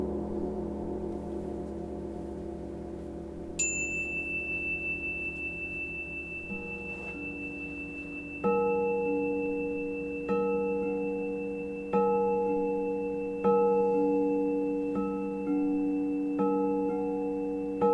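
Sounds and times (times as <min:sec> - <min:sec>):
crystal bowls ringing in a live performance: 0:00.2 - 0:17.9.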